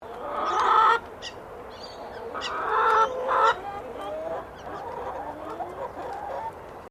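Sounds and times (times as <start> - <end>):
chicken clucking: 0.0 - 6.8.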